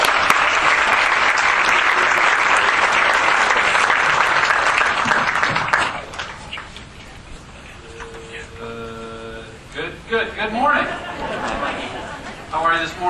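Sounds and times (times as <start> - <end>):
congregation clapping for a speaker: 0.0 - 6.8
laughter: 10.6 - 12.8.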